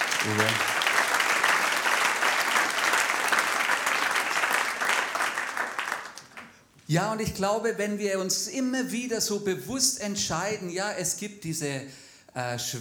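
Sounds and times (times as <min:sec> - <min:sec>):
audience applause: 0:00.0 - 0:06.6
speech: 0:00.2 - 0:00.8, 0:06.9 - 0:12.7.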